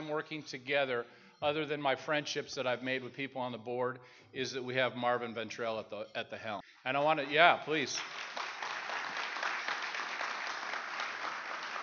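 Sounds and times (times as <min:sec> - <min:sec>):
speech: 0:00.1 - 0:08.4
round of applause: 0:07.1 - 0:11.8.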